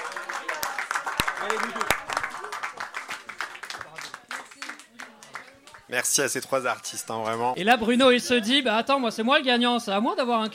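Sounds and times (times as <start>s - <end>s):
audience applauding: 0.0s - 6.2s
speech: 1.4s - 2.0s, 5.9s - 10.5s.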